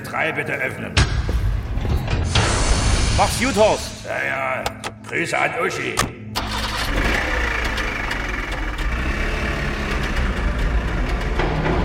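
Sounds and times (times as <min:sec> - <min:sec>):
speech: 0:00.1 - 0:01.9, 0:03.2 - 0:06.2
car engine running: 0:06.4 - 0:11.8.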